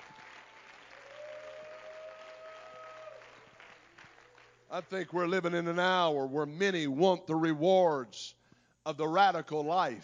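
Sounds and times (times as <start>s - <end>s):
congregation clapping hands: 0.0s - 5.4s
speech: 4.7s - 10.0s.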